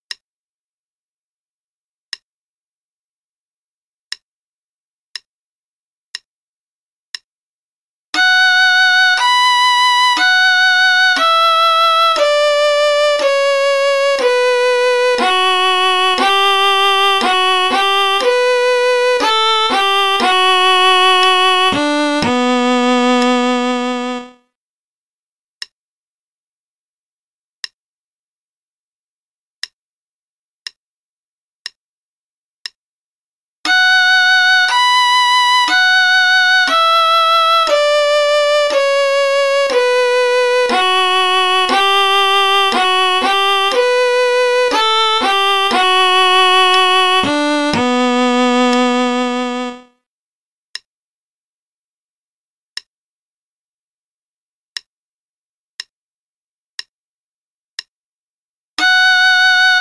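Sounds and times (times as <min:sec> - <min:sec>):
play-along concerto in B minor at 60 bpm: 0:08.2 - 0:24.4, 0:33.7 - 0:49.9, 0:58.8 - 0:59.8.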